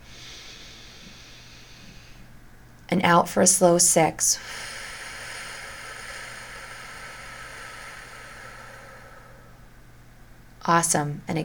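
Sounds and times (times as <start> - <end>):
slow deep inhale during a breathing exercise: 0.0 - 2.4, 4.4 - 9.8
speech: 2.9 - 4.7, 10.7 - 11.4.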